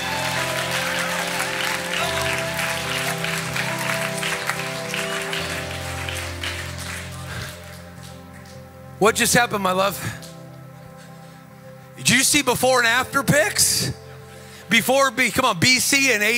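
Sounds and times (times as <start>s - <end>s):
audience clapping: 0.0s - 8.7s
speech: 9.0s - 10.2s, 12.3s - 14.0s, 14.7s - 16.3s.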